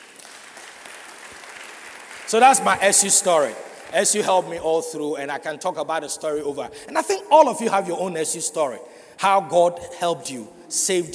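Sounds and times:
audience clapping: 0.0s - 5.0s
speech: 2.3s - 11.1s.

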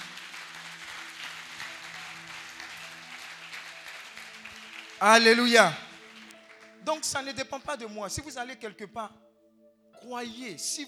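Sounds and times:
church congregation clapping to acclaim God: 0.0s - 8.4s
speech: 5.0s - 5.8s, 6.8s - 9.2s, 10.0s - 10.8s.

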